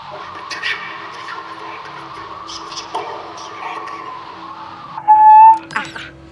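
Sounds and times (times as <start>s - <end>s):
extraterrestrial SOS signal through a chimney: 4.6s - 6.0s
high electronic beep: 5.0s - 6.0s.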